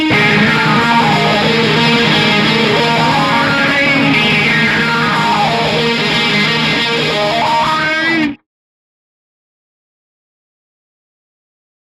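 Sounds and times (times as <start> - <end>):
bass guitar: 0.1 - 8.3.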